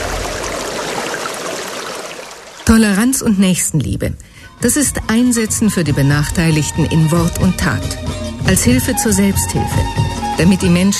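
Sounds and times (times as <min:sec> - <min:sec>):
water flowing from a village water supply pumping station: 0:00.0 - 0:03.2
speech: 0:02.7 - 0:10.9.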